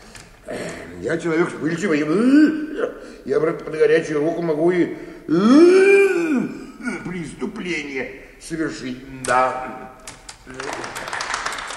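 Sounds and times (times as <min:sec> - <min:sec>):
speech: 0:00.5 - 0:05.8, 0:07.6 - 0:11.0
bank employees applauding to greet Shipuchin: 0:10.4 - 0:11.7.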